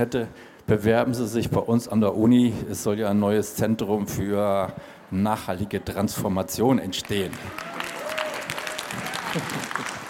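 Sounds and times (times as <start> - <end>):
speech: 0.0 - 7.7, 9.3 - 10.0
audience applause: 7.0 - 10.0.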